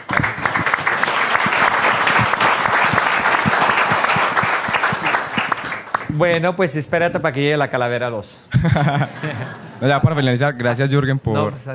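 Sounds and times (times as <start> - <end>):
applause for entrepreneurs: 0.0 - 6.4
speech: 6.2 - 11.7
laughter: 8.5 - 10.2.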